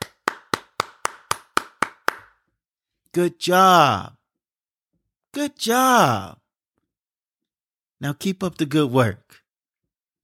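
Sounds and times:
hands clapping: 0.0s - 2.4s
speech: 3.1s - 4.2s, 5.3s - 6.4s, 8.0s - 9.3s.

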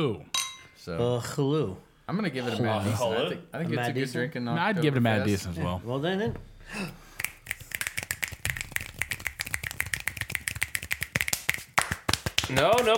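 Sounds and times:
speech: 0.0s - 7.0s, 12.5s - 12.9s
claps or finger snaps from a few people: 7.2s - 12.9s.

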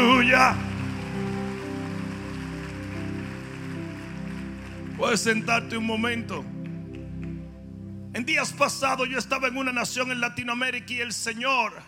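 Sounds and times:
audience applauding: 0.0s - 7.5s
speech: 5.0s - 6.6s, 8.2s - 11.8s.

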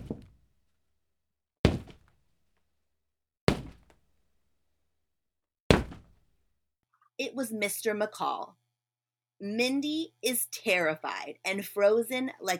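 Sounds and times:
heavy footsteps coming up the stairs: 0.0s - 0.4s, 1.7s - 2.1s, 3.5s - 4.0s, 5.7s - 6.2s
speech: 7.2s - 8.6s, 9.4s - 12.5s.

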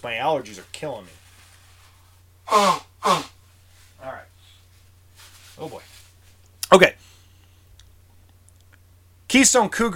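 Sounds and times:
speech: 0.0s - 1.2s, 2.5s - 3.3s, 5.6s - 5.9s, 6.7s - 7.0s, 9.3s - 9.9s
person blowing nose: 2.4s - 3.4s.

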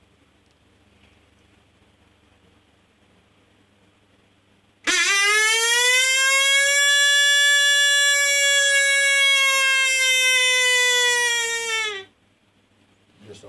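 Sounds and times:
predator call imitating a coyote interrogation howl: 4.9s - 12.1s.

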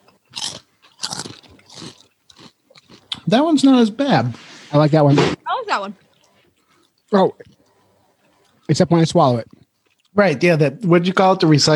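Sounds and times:
crunchy snack being bitten and chewed: 0.0s - 3.3s, 6.0s - 10.2s
speech: 3.3s - 6.0s, 7.1s - 7.6s, 8.7s - 9.6s, 10.2s - 11.7s.

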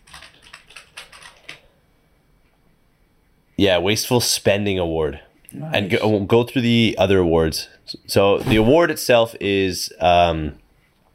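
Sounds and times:
typing on a computer keyboard: 0.0s - 1.6s
speech: 3.6s - 10.6s.

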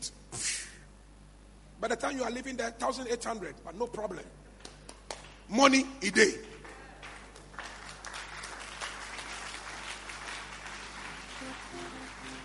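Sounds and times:
speech: 1.8s - 4.4s, 5.5s - 6.6s
audience clapping: 4.6s - 5.5s, 6.1s - 12.4s.

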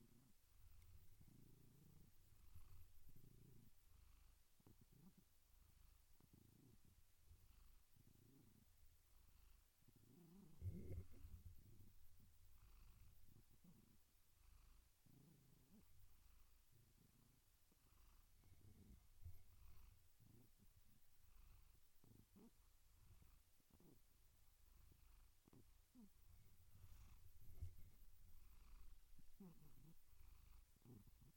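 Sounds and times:
domestic cat purring with snuffles: 0.0s - 31.3s.

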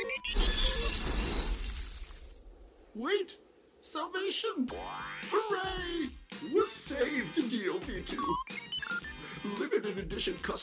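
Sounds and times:
spaceship crash landing impact with glassy shattering: 0.3s - 2.7s
speech: 3.0s - 8.5s, 9.4s - 10.6s.

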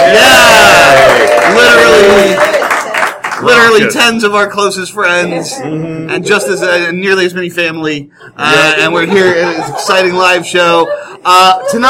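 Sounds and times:
live audience cheering and whooping: 0.0s - 3.8s
speech: 3.7s - 11.8s
laughter: 8.2s - 11.8s.

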